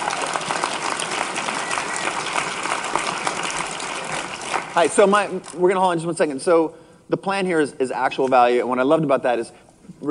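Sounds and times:
crowd clapping: 0.0s - 5.3s
speech: 4.8s - 10.1s.

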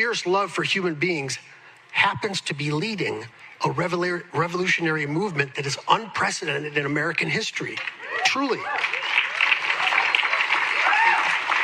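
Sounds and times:
speech: 0.0s - 9.0s
audience applause: 7.8s - 11.6s.

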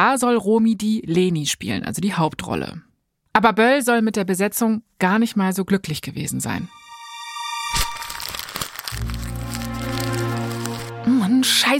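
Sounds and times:
speech: 0.0s - 6.8s, 11.4s - 11.7s
paper letter being crumpled: 7.7s - 11.2s.

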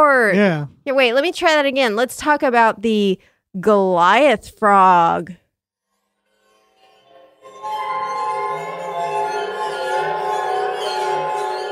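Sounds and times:
speech: 0.0s - 5.4s
waterphone spooky sound effect: 7.1s - 11.7s.

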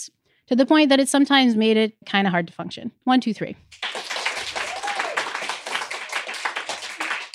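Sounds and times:
speech: 0.0s - 3.9s
audience clapping: 3.7s - 7.3s.

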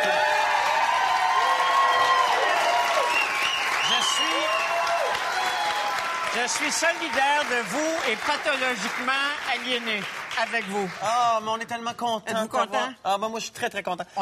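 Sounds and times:
audience applause: 0.0s - 11.4s
speech: 6.4s - 14.2s.

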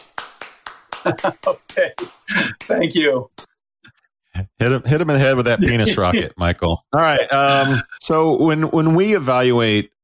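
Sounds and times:
golf clap: 0.0s - 3.5s
laughter: 1.0s - 2.7s, 5.2s - 8.7s
speech: 1.0s - 3.5s, 4.6s - 10.0s.

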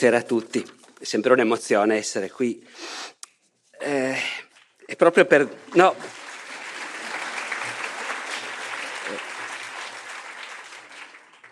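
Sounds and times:
speech: 0.0s - 3.2s, 3.8s - 6.2s
audience applause: 5.4s - 11.5s.

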